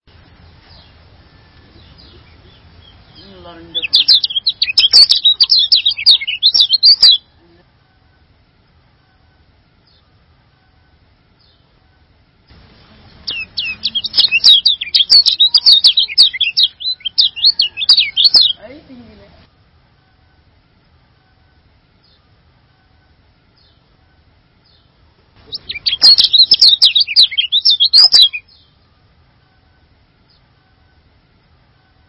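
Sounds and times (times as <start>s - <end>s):
bird song: 0.4s - 7.3s, 13.0s - 18.7s, 23.5s - 23.9s, 24.6s - 29.6s.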